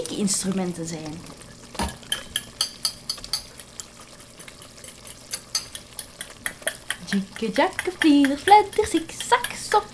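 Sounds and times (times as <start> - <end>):
speech: 0.0 - 1.4, 7.1 - 9.9
green eggs being whisked in a bowl: 0.0 - 9.9.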